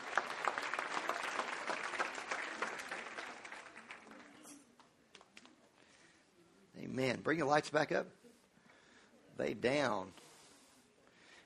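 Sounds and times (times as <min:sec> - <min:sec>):
large group clapping: 0:00.0 - 0:04.6
speech: 0:07.0 - 0:08.2, 0:09.4 - 0:10.2.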